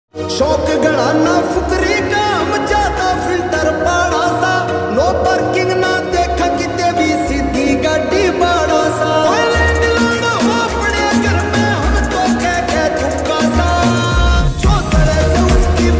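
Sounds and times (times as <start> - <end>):
ringtone: 0.3 - 15.9.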